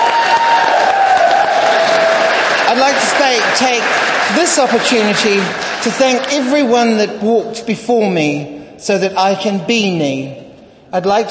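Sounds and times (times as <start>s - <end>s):
audience applause for two women performers: 0.0s - 6.6s
speech: 2.9s - 11.2s.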